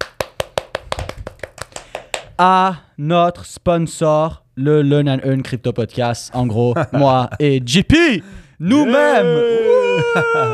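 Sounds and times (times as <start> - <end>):
hand clapping: 0.0 - 2.4
speech: 2.4 - 10.5
laughter: 9.6 - 10.5.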